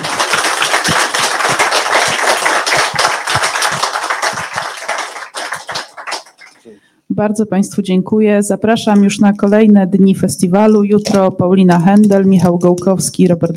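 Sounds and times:
audience applause: 0:00.0 - 0:06.7
speech: 0:07.2 - 0:13.5.

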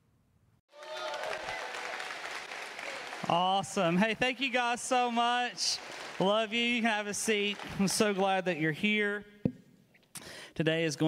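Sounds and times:
audience applause welcoming a pastor at a church service: 0:00.7 - 0:09.1
speech: 0:03.2 - 0:09.3, 0:10.6 - 0:11.0.

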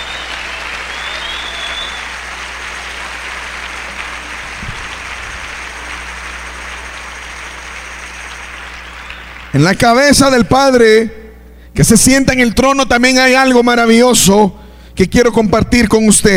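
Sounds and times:
audience applause: 0:00.0 - 0:09.9
speech: 0:09.6 - 0:11.2, 0:11.8 - 0:16.3.

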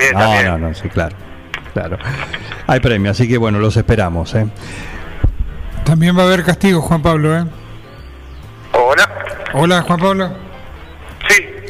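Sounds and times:
speech: 0:00.0 - 0:05.0, 0:05.9 - 0:07.6, 0:08.9 - 0:10.4
echo on the phone line: 0:08.7 - 0:10.6.

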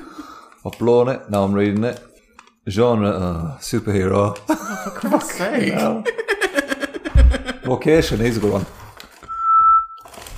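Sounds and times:
speech: 0:00.6 - 0:06.2, 0:07.7 - 0:08.8
laughter: 0:04.5 - 0:07.7
whistle blowing: 0:09.3 - 0:10.0.

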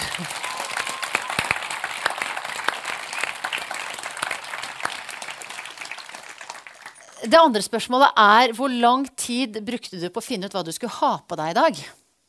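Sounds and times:
audience applause: 0:00.0 - 0:07.2
speech: 0:07.2 - 0:12.0.

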